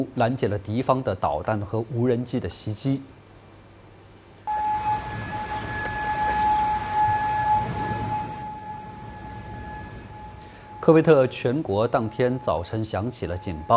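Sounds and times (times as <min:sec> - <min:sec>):
speech: 0:00.0 - 0:03.2, 0:10.9 - 0:13.7
air raid warning siren in Kuwait: 0:04.5 - 0:13.7.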